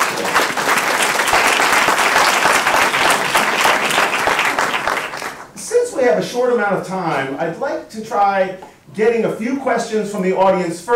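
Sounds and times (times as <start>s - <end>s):
audience applause for the panelists after a panel discussion: 0.0s - 5.5s
speech: 6.0s - 10.9s.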